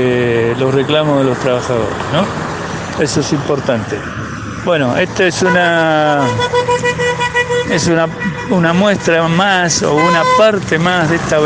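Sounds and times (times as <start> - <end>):
speech: 0.0 - 6.9, 7.7 - 11.4
traffic: 0.0 - 11.4
car horns honking from passing vehicles in support of protesting workers: 5.1 - 11.4.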